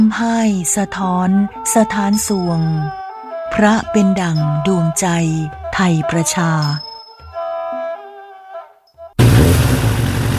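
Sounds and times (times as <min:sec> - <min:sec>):
speech: 0:00.1 - 0:06.9
soft sustained tones: 0:00.6 - 0:07.8
loud modified car exhaust roaring: 0:09.2 - 0:10.3.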